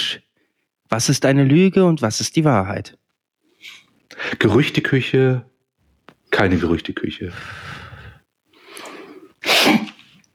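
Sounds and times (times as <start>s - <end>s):
speech: 0.9s - 3.0s, 3.6s - 5.5s, 6.3s - 7.8s
coughing and sniffing up the nose: 9.2s - 10.2s.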